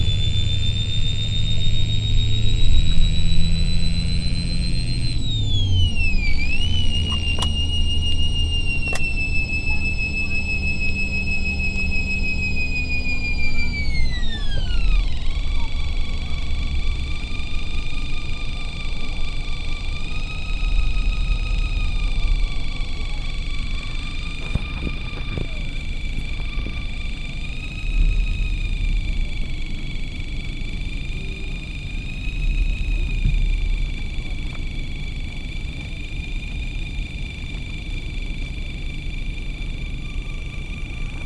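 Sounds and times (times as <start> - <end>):
airport transfer bus in Brazil: 0.0 - 41.2.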